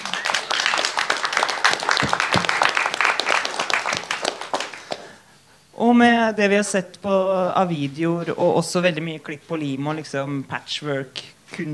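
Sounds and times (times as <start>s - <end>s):
audience applause: 0.0s - 5.2s
speech: 5.8s - 11.7s.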